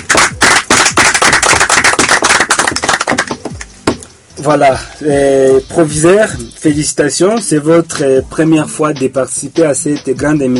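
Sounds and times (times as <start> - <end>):
crowd applause: 0.0 - 3.4
speech: 4.4 - 10.5.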